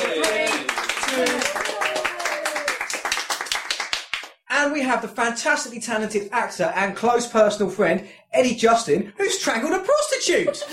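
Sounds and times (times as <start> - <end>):
studio audience whooping and shouting: 0.0 - 2.8
studio audience applause: 0.0 - 4.3
speech: 4.8 - 10.7.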